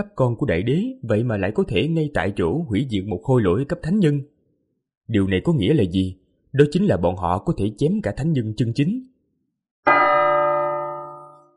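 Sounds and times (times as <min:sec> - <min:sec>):
speech: 0:00.0 - 0:04.3, 0:05.1 - 0:09.1
bronze bell ringing: 0:09.9 - 0:11.5.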